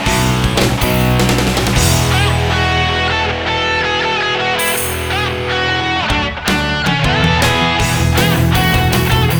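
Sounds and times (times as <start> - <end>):
karaoke singing: 0.2 - 9.3.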